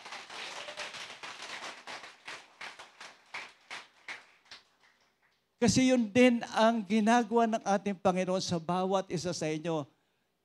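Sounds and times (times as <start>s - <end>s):
audience clapping: 0.0s - 5.4s
speech: 5.6s - 10.0s.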